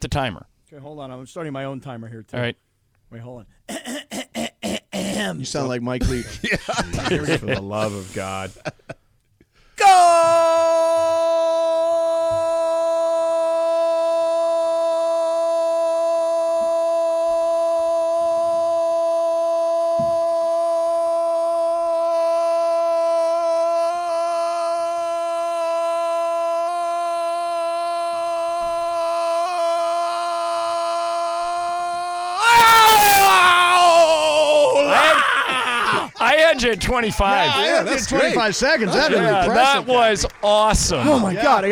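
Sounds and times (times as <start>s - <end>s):
speech: 0.0s - 8.9s, 36.6s - 41.7s
laughter: 6.0s - 9.0s, 34.7s - 41.7s
person bellowing a drawn-out goal call: 9.8s - 36.1s.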